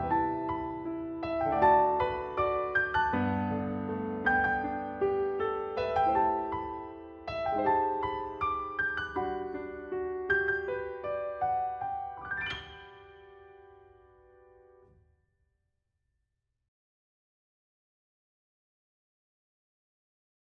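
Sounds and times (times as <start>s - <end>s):
piano: 0.0s - 15.2s.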